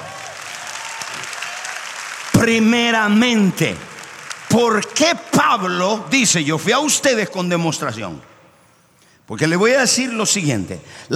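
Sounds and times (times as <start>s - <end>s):
audience applause: 0.0s - 5.5s
speech: 2.4s - 3.9s, 4.5s - 8.3s, 9.3s - 11.1s.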